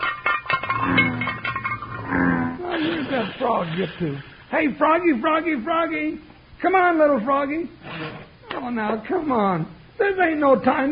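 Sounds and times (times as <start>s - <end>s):
bones rattling in a frying pan: 0.0s - 2.0s
speech: 3.2s - 10.9s.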